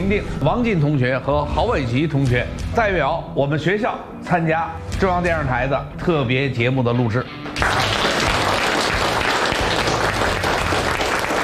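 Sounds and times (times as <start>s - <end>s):
speech: 0.1s - 7.9s
audience applause: 7.6s - 11.4s.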